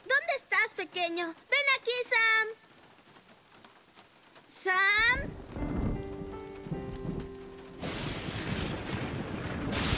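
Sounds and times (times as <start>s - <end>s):
heavy rain: 0.0s - 9.9s
speech: 1.1s - 2.6s, 4.6s - 5.4s
thunder during a heavy rainstorm: 5.1s - 9.9s.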